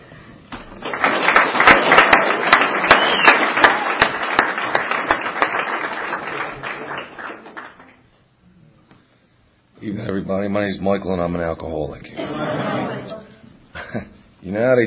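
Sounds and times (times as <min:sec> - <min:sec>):
audience applause welcoming speaker: 0:00.7 - 0:08.0
speech: 0:10.2 - 0:13.2, 0:13.9 - 0:14.8
laughter: 0:12.2 - 0:14.2.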